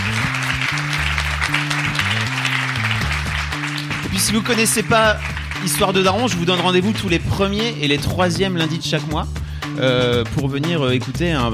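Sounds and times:
audience applause: 0:00.0 - 0:06.9
low stepping bass line music: 0:00.0 - 0:11.5
speech: 0:04.2 - 0:11.5.

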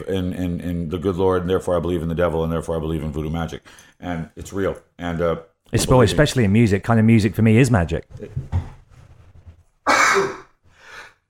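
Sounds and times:
speech: 0:00.0 - 0:08.6
sneeze: 0:09.9 - 0:10.5.

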